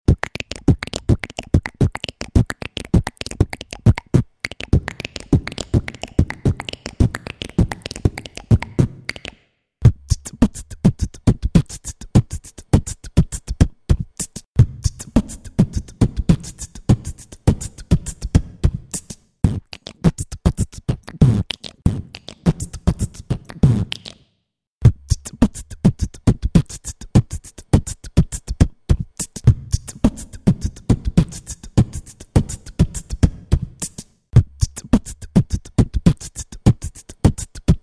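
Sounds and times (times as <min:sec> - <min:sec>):
beatbox: 0:00.1 - 0:24.2, 0:24.8 - 0:37.8.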